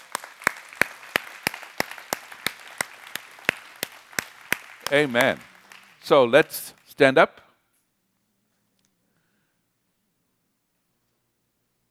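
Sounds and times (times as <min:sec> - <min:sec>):
audience applause: 0:00.0 - 0:06.9
speech: 0:04.9 - 0:07.4.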